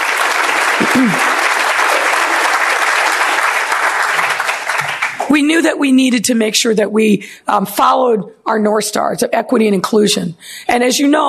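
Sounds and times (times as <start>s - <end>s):
audience applause: 0.0s - 5.3s
speech: 1.0s - 1.3s, 5.3s - 11.2s.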